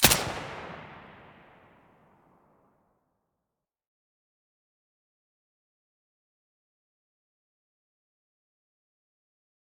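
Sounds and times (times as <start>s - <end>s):
silenced gunshot in mono: 0.0s - 2.5s.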